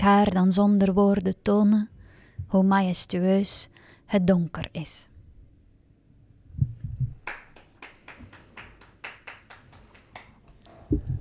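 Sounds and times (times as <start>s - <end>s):
speech: 0.0s - 5.1s, 10.9s - 11.2s
people clapping along: 7.2s - 10.6s.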